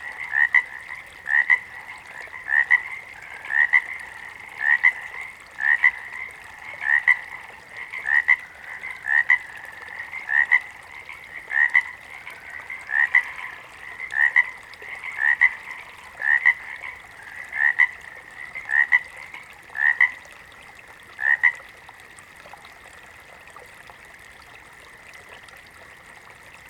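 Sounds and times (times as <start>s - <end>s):
water frog giving short paired croaks: 0.0s - 20.3s, 21.1s - 21.6s.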